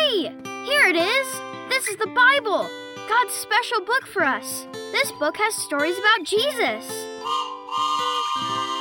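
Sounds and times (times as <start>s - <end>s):
speech: 0.1s - 7.4s
train whistle: 7.2s - 8.7s.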